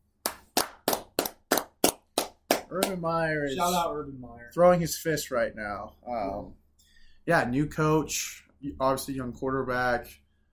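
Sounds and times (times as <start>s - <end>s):
hand clapping: 0.2s - 3.1s
speech: 2.7s - 6.6s, 7.2s - 10.2s.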